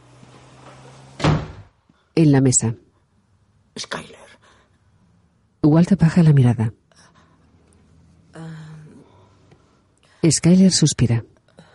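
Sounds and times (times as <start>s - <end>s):
door closing: 0.0s - 1.8s
speech: 2.2s - 2.8s, 3.8s - 4.2s, 5.6s - 6.8s, 10.2s - 11.3s.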